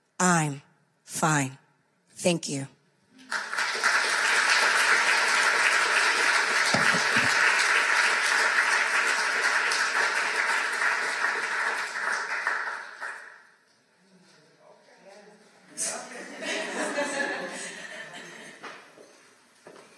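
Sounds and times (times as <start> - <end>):
speech: 0.2 - 1.6, 2.2 - 2.8
audience applause: 3.2 - 13.4
laughter: 6.7 - 7.6, 15.8 - 18.8.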